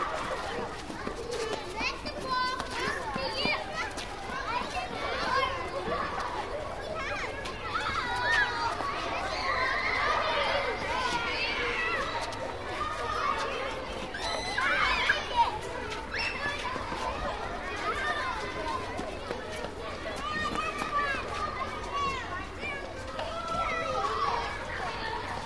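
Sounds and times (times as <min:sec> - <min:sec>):
children playing in a schoolyard: 0:00.0 - 0:25.4.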